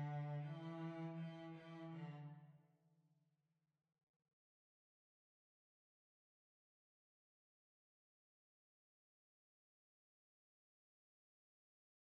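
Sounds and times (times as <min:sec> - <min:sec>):
violoncello: 0:00.0 - 0:02.6.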